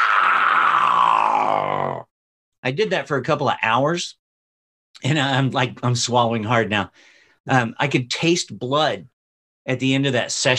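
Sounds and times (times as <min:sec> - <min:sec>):
human voice imitating a cat meow turning into growl: 0:00.0 - 0:02.1
speech: 0:02.6 - 0:04.2, 0:05.0 - 0:10.5.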